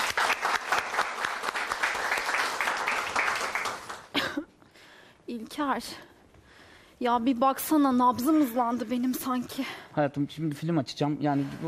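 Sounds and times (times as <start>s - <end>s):
audience applause: 0.0s - 4.1s
speech: 5.4s - 6.1s, 7.0s - 11.6s.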